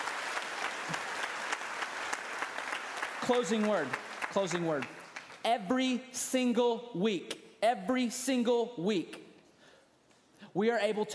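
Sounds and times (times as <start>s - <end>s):
audience cheering and applause: 0.0s - 5.2s
speech: 3.3s - 9.2s, 10.6s - 11.1s.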